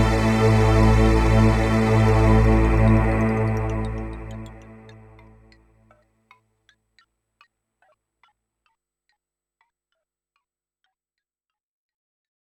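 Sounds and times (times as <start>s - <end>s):
new age sounds from Yamaha TX16W sampler: 0.0s - 5.6s.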